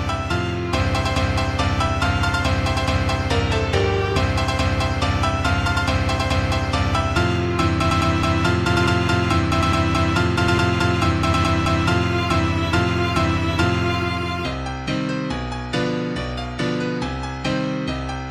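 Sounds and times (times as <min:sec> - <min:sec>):
violin: 0:00.0 - 0:16.2
piano: 0:00.0 - 0:18.2.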